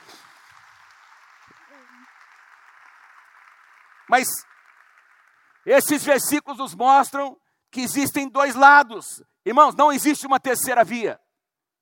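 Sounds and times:
audience applause: 0.0 - 6.2
speech: 1.5 - 2.2, 4.1 - 4.6, 5.6 - 11.2.

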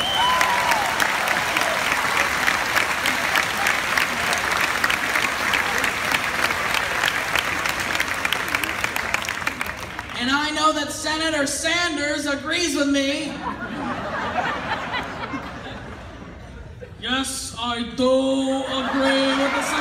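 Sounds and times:
faint cheering or whistles: 0.0 - 4.5
audience applause: 0.0 - 10.2
speech: 11.3 - 13.6, 17.2 - 19.2
laughter: 13.4 - 17.0, 18.6 - 19.8.

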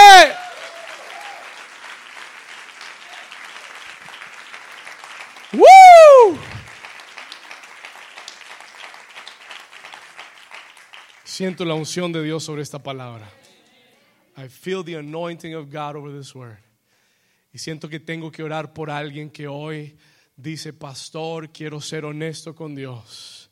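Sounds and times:
audience applauding loudly: 0.0 - 11.6
speech: 11.4 - 13.4, 14.4 - 16.7, 17.5 - 23.4.

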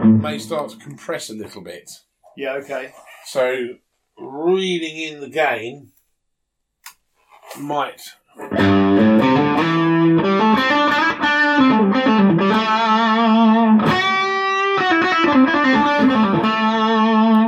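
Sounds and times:
electric guitar through an overdrive pedal stacked on an amp: 0.0 - 0.6, 8.4 - 17.4
speech: 0.2 - 5.9, 7.5 - 11.0.

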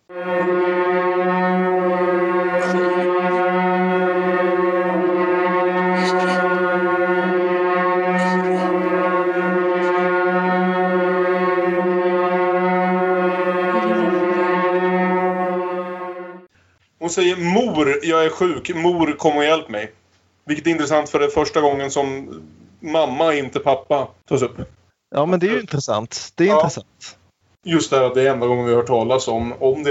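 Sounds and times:
loud electronic film score with buzzing synthesizer drone: 0.0 - 16.5
speech: 17.1 - 29.8.

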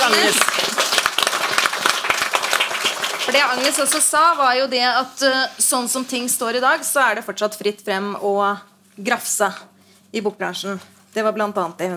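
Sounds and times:
applause: 0.0 - 4.2
speech: 0.1 - 0.8, 3.4 - 11.9.

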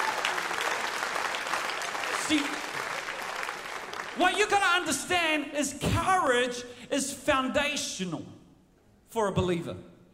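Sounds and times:
audience clapping: 0.0 - 5.0
speech: 2.3 - 2.6, 4.2 - 8.4, 9.1 - 9.9.

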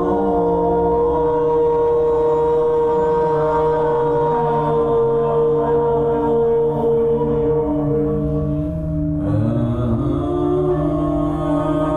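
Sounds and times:
voices singing: 0.0 - 8.3, 9.2 - 11.9.

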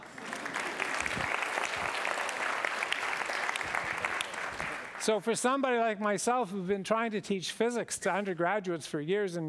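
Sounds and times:
students clapping: 0.0 - 5.1
speech: 5.0 - 9.4.

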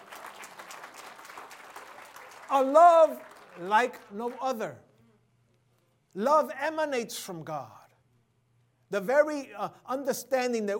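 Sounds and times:
audience clapping: 0.0 - 4.8
speech: 2.5 - 4.9, 6.1 - 7.8, 8.9 - 10.7.

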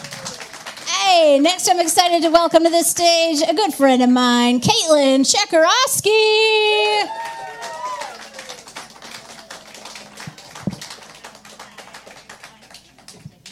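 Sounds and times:
audience applause: 0.0 - 2.0, 7.0 - 13.5
speech: 1.1 - 7.3.

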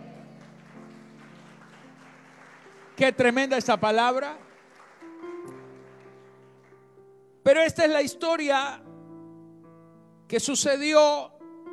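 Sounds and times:
audience applauding: 0.0 - 7.0
sustained low keyboard notes: 0.0 - 11.7
speech: 3.0 - 4.5, 7.5 - 8.8, 10.3 - 11.3.

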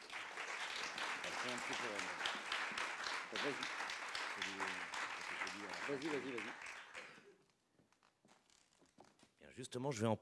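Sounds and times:
audience applause: 0.0 - 7.3
speech: 1.4 - 2.5, 3.3 - 6.7, 9.6 - 10.1.

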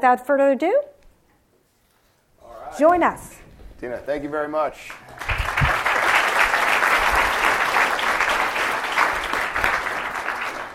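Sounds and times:
speech: 0.0 - 0.9, 2.8 - 5.1
audience applauding to welcome a speaker at a talk: 4.8 - 10.7.

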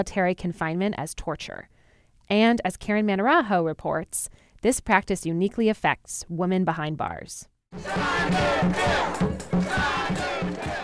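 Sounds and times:
speech: 0.0 - 1.7, 2.3 - 10.3
crowd of protesters murmuring outdoors: 7.8 - 10.8
protesters shouting: 7.8 - 10.8.

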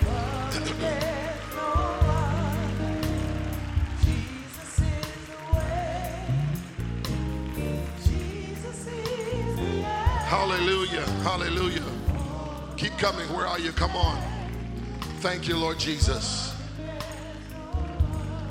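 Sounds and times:
audience clapping hands: 0.0 - 18.5
speech: 0.5 - 1.8, 10.3 - 11.9, 12.8 - 14.3, 15.2 - 16.4.

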